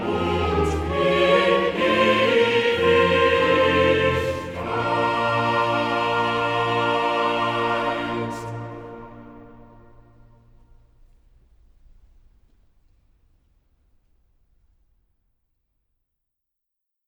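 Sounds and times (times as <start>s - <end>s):
choir singing: 0.0s - 10.5s.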